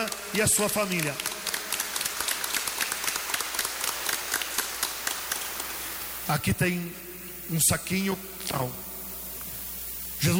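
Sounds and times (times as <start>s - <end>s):
speech: 0.0s - 1.3s, 6.3s - 8.9s
audience applause: 0.0s - 6.3s.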